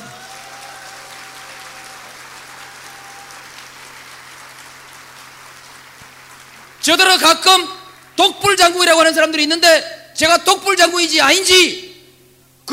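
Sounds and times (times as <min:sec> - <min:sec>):
audience applause: 0:00.0 - 0:08.2
speech: 0:06.8 - 0:11.8.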